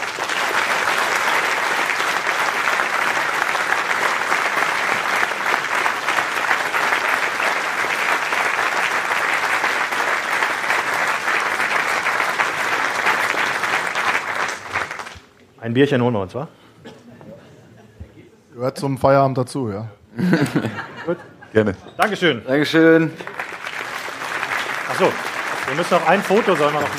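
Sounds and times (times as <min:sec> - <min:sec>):
audience applause: 0:00.0 - 0:15.3, 0:22.8 - 0:26.9
speech: 0:15.7 - 0:16.6, 0:18.6 - 0:23.4, 0:25.0 - 0:26.9
laughter: 0:17.0 - 0:18.4, 0:20.2 - 0:22.0.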